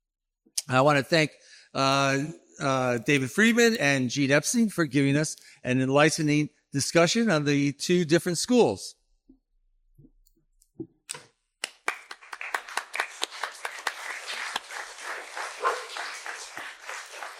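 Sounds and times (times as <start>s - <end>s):
speech: 0.7s - 9.0s
audience clapping: 11.6s - 17.3s.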